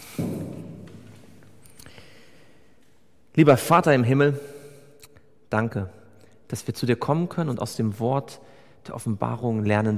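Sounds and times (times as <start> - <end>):
soft dull thud of a congregation kneeling for prayer: 0.1 - 1.2
speech: 3.4 - 4.6, 5.5 - 9.9.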